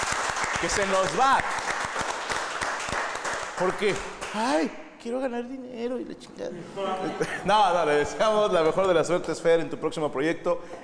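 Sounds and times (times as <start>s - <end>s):
applause: 0.0s - 4.6s
speech: 0.6s - 1.6s, 3.6s - 10.8s
laughter: 6.5s - 9.0s.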